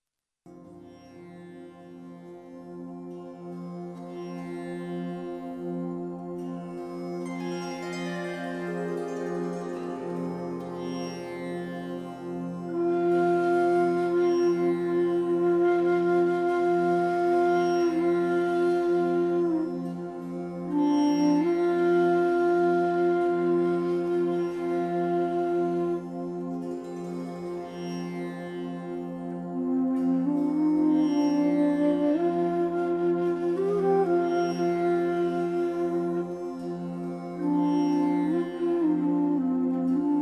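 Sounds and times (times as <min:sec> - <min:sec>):
Indian raga: 0:00.5 - 0:40.1.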